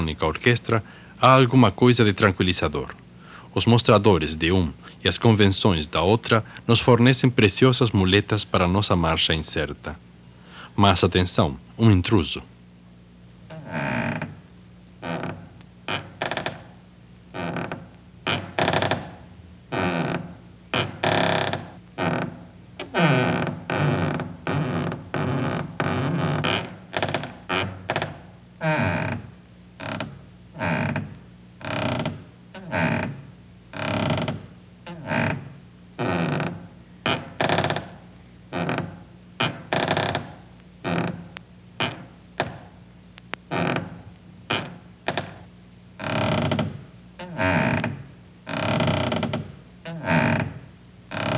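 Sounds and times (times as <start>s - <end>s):
speech: 0.1s - 3.0s, 3.6s - 10.1s, 10.8s - 12.5s, 13.7s - 14.2s
creaking door: 13.5s - 14.4s, 15.0s - 42.8s, 43.5s - 51.3s.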